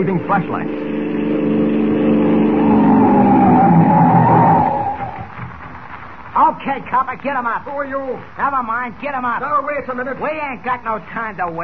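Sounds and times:
speech: 0.0s - 0.9s, 6.6s - 11.6s
car approaching: 0.0s - 5.6s.

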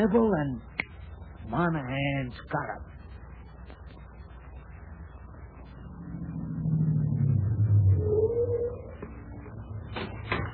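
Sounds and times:
speech: 0.0s - 0.8s, 1.5s - 3.0s
car engine revving and idling: 5.6s - 10.5s.

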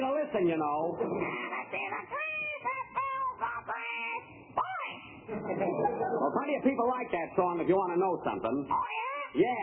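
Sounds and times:
speech: 0.3s - 2.2s, 5.3s - 9.6s
parrot squawking and chattering: 1.1s - 5.2s, 8.6s - 9.6s.

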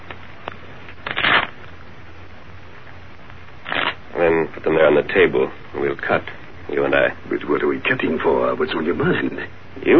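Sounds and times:
deck of playing cards being shuffled in a riffle: 0.9s - 1.6s, 3.7s - 4.0s
speech: 4.2s - 9.9s.

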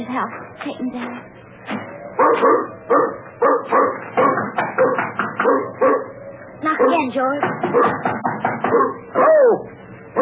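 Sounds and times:
speech: 0.0s - 4.1s, 6.9s - 10.2s
dog barking: 2.2s - 8.0s, 8.6s - 9.5s.

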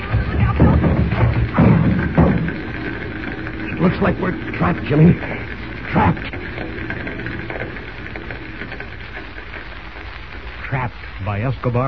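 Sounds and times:
door being broken in: 0.0s - 10.2s
speech: 4.0s - 6.4s, 11.4s - 11.8s.

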